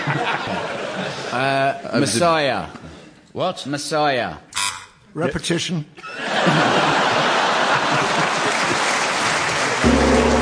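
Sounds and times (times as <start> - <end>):
laughter: 0.0 - 1.4, 6.0 - 9.8
speech: 1.3 - 2.8, 3.4 - 4.5, 5.2 - 6.8
steady applause: 7.4 - 9.9
single gong struck with a deep sustained tone: 9.8 - 10.4.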